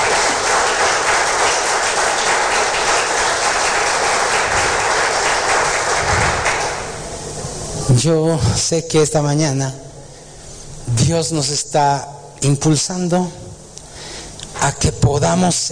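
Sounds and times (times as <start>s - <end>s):
audience applauding loudly: 0.0s - 7.1s
speech: 8.0s - 9.9s, 10.9s - 13.4s, 14.6s - 15.6s.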